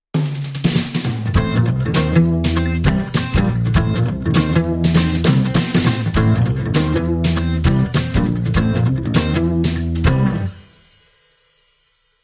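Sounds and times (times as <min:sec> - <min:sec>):
funk music: 0:00.2 - 0:11.0.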